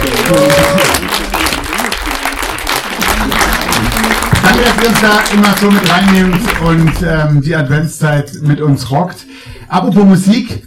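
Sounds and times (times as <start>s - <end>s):
audience applause: 0.0s - 7.2s
speech: 0.3s - 1.0s, 4.6s - 10.6s.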